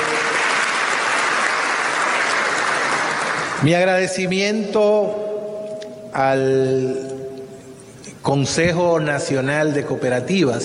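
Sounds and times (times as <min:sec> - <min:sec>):
audience applause: 0:00.0 - 0:03.6
speech: 0:03.6 - 0:05.3, 0:06.2 - 0:07.2, 0:08.2 - 0:10.6.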